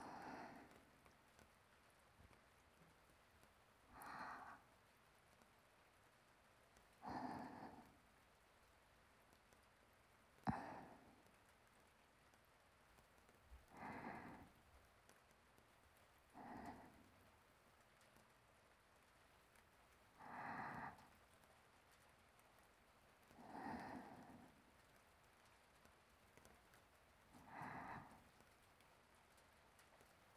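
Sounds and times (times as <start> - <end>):
sleeping breathing: 0.0 - 1.1, 3.9 - 4.8, 7.0 - 8.0, 10.4 - 11.4, 13.6 - 14.6, 16.4 - 17.2, 20.2 - 21.2, 23.2 - 25.0, 27.4 - 28.5.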